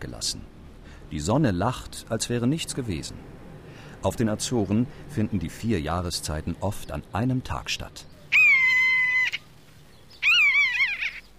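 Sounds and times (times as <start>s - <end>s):
speech: 0.0s - 3.4s, 4.0s - 8.4s
common buzzard calling: 8.2s - 11.3s.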